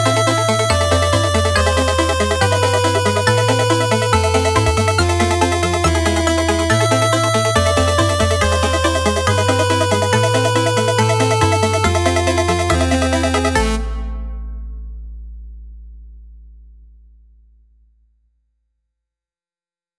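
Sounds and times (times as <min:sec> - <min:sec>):
stealth mission music: 0:00.0 - 0:14.8.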